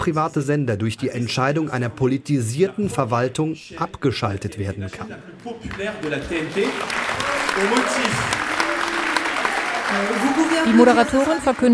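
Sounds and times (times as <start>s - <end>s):
speech: 0.0s - 8.5s, 9.9s - 11.7s
audience applause: 5.4s - 11.7s
voices and cheering: 5.8s - 11.7s.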